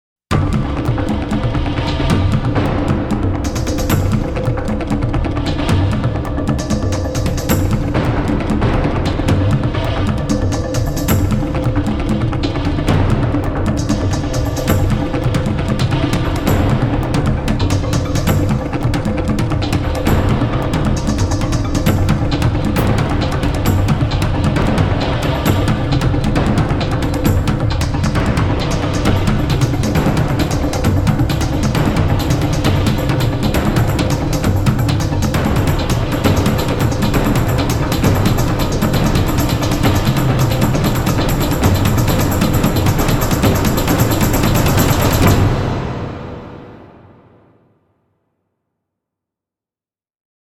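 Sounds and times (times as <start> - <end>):
world drums: 0.3 - 47.4.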